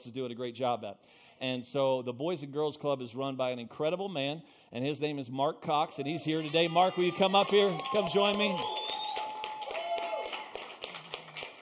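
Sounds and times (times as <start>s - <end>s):
speech: 0.0s - 8.9s
audience clapping: 6.4s - 11.5s.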